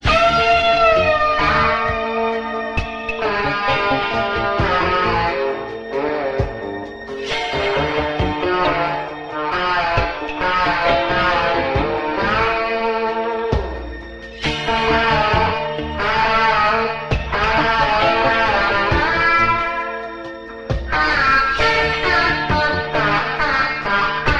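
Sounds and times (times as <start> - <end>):
phonk guitar loops: 0.0 - 24.3.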